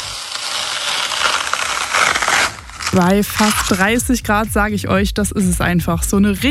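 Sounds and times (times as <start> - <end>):
juicy watermelon being cut: 0.0 - 4.0
speech: 2.9 - 6.4.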